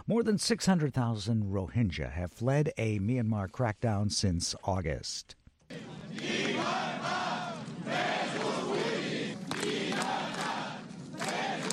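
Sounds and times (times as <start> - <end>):
speech: 0.1 - 6.4
firefighters shouting slogans in Barcelona: 5.7 - 11.7.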